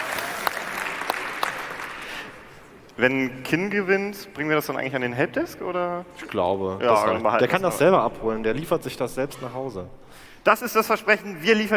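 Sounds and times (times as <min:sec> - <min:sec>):
audience applause at a hacker congress assembly: 0:00.0 - 0:02.8
speech: 0:03.0 - 0:11.7.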